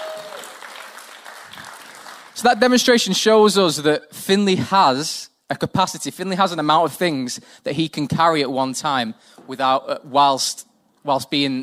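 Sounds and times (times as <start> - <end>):
audience applause: 0.0 - 2.4
speech: 2.4 - 11.6.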